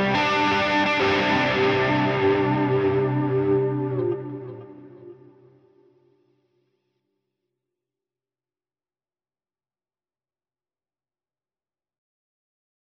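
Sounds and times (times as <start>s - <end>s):
crunchy guitar with sonic delay effect: 0.0s - 5.7s.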